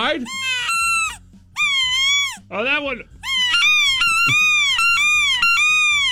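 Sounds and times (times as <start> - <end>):
speech: 0.0 - 0.8, 2.5 - 3.2
duck call being blown: 0.3 - 2.4, 3.3 - 6.0.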